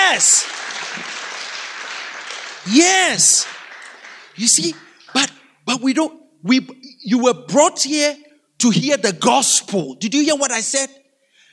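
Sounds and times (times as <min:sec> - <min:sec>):
crowd clapping: 0:00.0 - 0:05.5
speech: 0:00.1 - 0:00.8, 0:02.6 - 0:03.6, 0:04.4 - 0:11.0.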